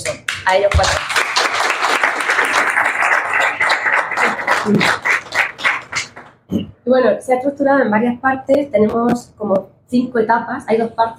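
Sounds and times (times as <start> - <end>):
speech: 0.5 - 1.2, 4.6 - 5.1, 6.5 - 11.1
audience applause: 0.8 - 6.3.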